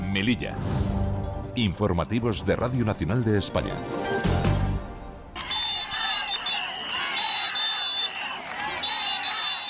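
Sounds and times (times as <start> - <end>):
speech: 0.2 - 4.3
protesters shouting slogans outside Hospital Universitario de Melilla: 5.4 - 9.6.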